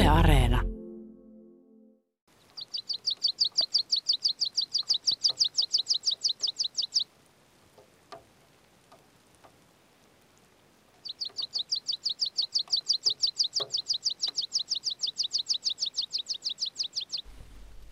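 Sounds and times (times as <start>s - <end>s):
speech: 0.1s - 0.7s
meadow pipit song: 2.3s - 7.1s, 11.0s - 17.3s.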